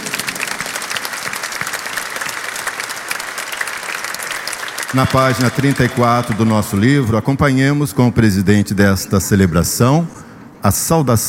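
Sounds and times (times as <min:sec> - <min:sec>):
church audience applause: 0:00.0 - 0:07.8
speech: 0:04.9 - 0:11.2.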